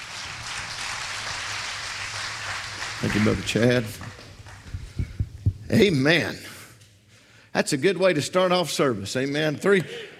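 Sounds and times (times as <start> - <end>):
faint church congregation applause during a service: 0.0 - 5.3
speech: 3.0 - 4.0, 5.7 - 6.5, 7.6 - 10.1.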